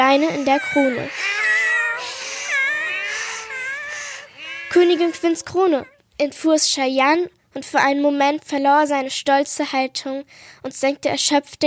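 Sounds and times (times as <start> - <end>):
cats murmuring and meowing: 0.0 - 6.0
speech: 0.1 - 1.3, 4.7 - 11.6.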